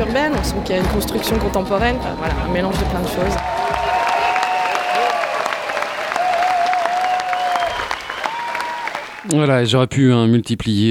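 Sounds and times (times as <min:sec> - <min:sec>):
speech: 0:00.1 - 0:03.7, 0:09.3 - 0:10.8
audience applause: 0:03.2 - 0:09.3.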